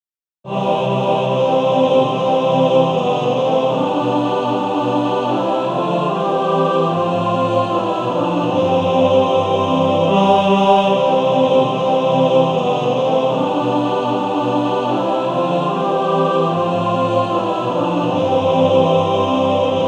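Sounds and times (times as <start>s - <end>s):
male choir singing in four parts: 0.5s - 19.8s.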